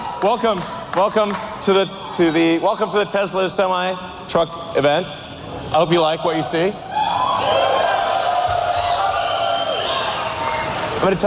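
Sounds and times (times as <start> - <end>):
speech: 0.2 - 6.9, 11.0 - 11.2
large audience cheering and whooping at Tesla Semi launch event: 6.8 - 11.2
shouts rising above the crowd: 6.9 - 11.0.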